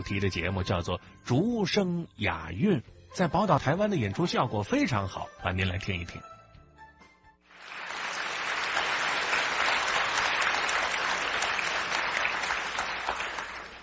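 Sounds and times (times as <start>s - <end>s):
speech: 0.0s - 6.3s
audience applause: 7.5s - 13.8s.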